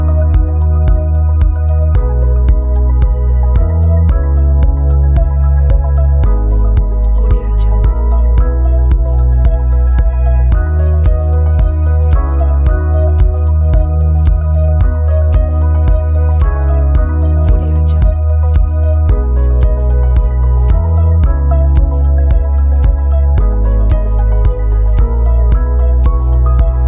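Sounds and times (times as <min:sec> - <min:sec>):
peaceful ambient music: 0:00.0 - 0:26.8.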